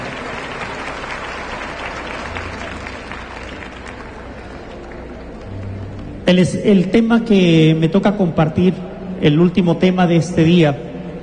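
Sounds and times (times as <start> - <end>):
audience applause: 0.0 - 6.0
speech: 6.3 - 10.9.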